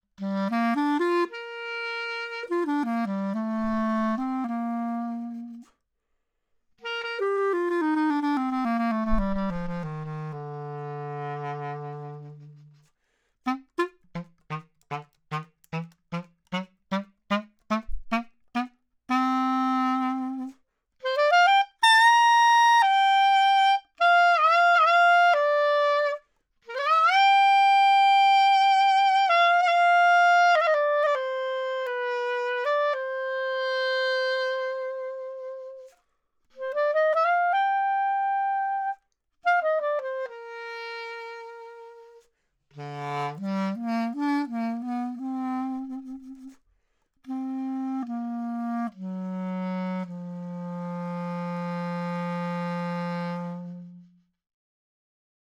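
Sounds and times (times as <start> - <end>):
B-flat clarinet: 0.0 - 5.8, 6.8 - 54.4.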